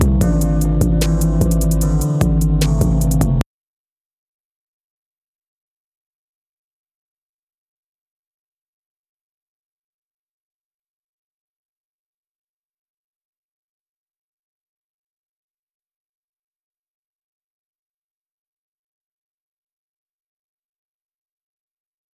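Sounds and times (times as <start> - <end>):
music beat: 0.0 - 3.4.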